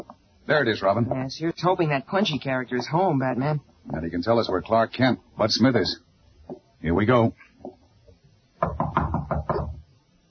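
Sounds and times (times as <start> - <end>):
speech: 0.5 - 7.5
firm knocking on a door: 8.6 - 9.9.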